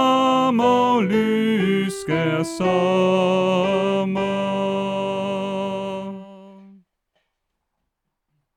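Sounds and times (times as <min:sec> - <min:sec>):
soprano: 0:00.0 - 0:06.8.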